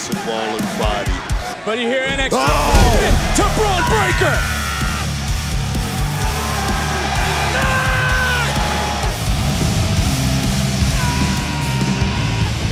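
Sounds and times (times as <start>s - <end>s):
arena crowd chanting a barking cheer: 0.0s - 12.6s
speech: 0.1s - 4.6s.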